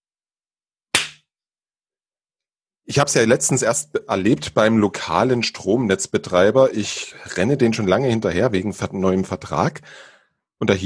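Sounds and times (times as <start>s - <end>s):
loud hand clap as an editing marker: 1.0s - 1.2s
speech: 2.9s - 10.8s.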